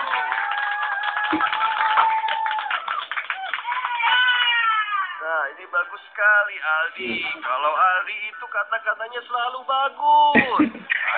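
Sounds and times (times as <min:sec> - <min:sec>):
audience clapping: 0:00.0 - 0:04.6
speech: 0:05.8 - 0:11.1.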